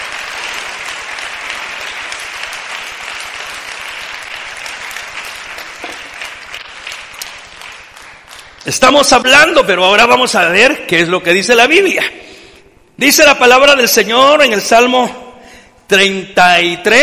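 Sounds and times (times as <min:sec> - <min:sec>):
audience applauding: 0:00.0 - 0:09.1
speech: 0:08.7 - 0:12.2, 0:13.0 - 0:15.2, 0:15.9 - 0:17.0.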